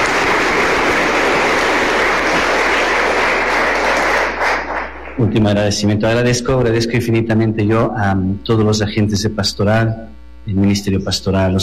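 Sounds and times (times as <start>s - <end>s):
crowd applause: 0.0s - 5.3s
speech: 5.2s - 11.6s.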